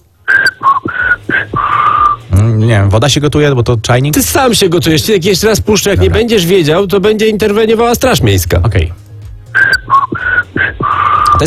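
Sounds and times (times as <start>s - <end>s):
woman whistling a melody: 0.3s - 2.2s, 9.6s - 11.4s
speech: 2.7s - 9.0s.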